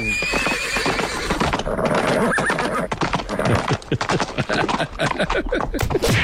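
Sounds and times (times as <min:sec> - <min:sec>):
horse whinnying: 0:00.0 - 0:06.0
hooves clattering: 0:00.0 - 0:06.2
laughter: 0:03.7 - 0:06.1
sharp cracking bangs: 0:05.8 - 0:06.2.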